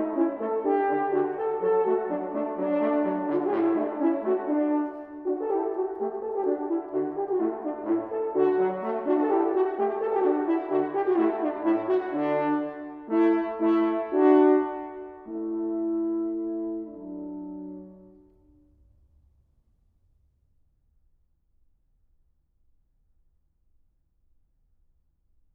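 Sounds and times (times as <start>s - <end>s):
two horns playing an allegro: 0.0s - 18.4s.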